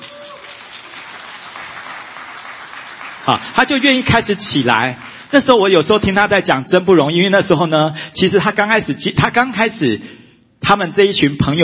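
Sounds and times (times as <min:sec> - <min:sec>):
audience applause: 0:00.0 - 0:05.3
speech: 0:03.3 - 0:11.6.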